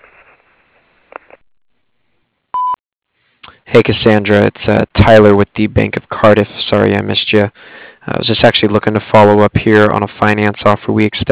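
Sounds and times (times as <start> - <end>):
answering machine beep: 2.6 - 2.8
speech: 3.7 - 11.3.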